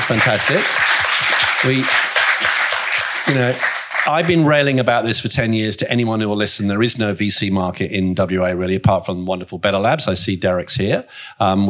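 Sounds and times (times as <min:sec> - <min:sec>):
audience round of applause: 0:00.0 - 0:04.6
speech: 0:00.1 - 0:01.0, 0:01.6 - 0:02.1, 0:03.3 - 0:11.6.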